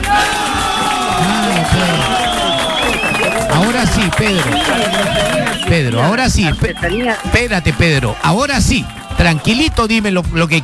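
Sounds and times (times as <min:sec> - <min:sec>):
studio audience applauding and cheering: 0:00.0 - 0:10.6
laughter: 0:00.1 - 0:09.5
speech: 0:05.8 - 0:10.6.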